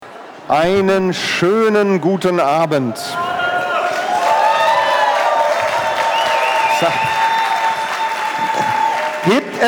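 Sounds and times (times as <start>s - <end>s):
speech: 0.5s - 3.3s, 6.8s - 7.1s, 9.2s - 9.6s
cheering: 3.1s - 9.6s
audience applause: 3.2s - 9.6s
whistling: 6.0s - 8.0s.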